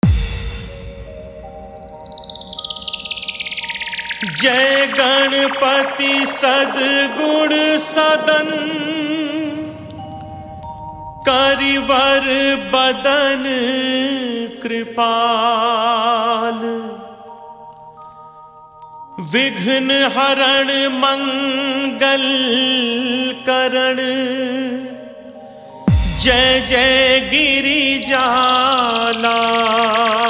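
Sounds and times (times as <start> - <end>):
Hindu devotional hymn DJ remix: 0.0 - 17.6, 19.2 - 30.2.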